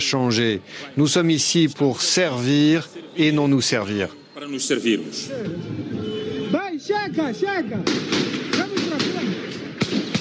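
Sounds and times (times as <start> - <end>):
speech: 0.0 - 6.2, 6.8 - 9.3
gunshots in a city centre: 7.8 - 10.2.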